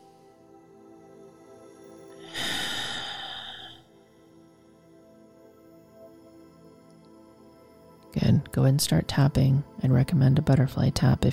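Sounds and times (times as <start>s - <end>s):
long deep breath during a guided swimming meditation for anxiety: 2.2s - 3.9s
speech: 8.5s - 11.3s.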